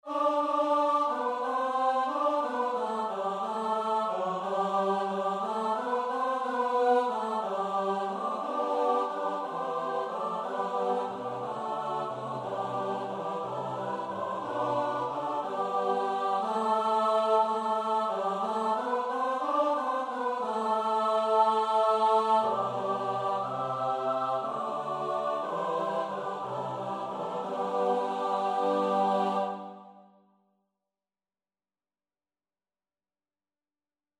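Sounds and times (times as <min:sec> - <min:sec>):
soprano alto tenor bass choir: 0:00.0 - 0:30.2.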